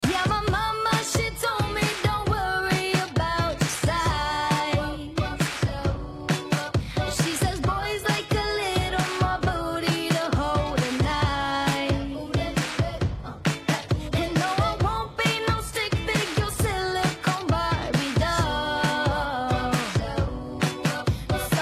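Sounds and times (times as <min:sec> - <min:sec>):
bassless music loop: 0:00.0 - 0:21.5.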